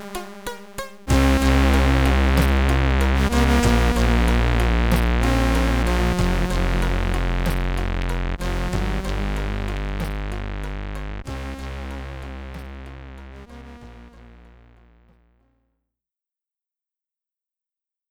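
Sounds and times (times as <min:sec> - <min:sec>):
game over SID chiptune jingle in stereo: 0:01.2 - 0:14.8.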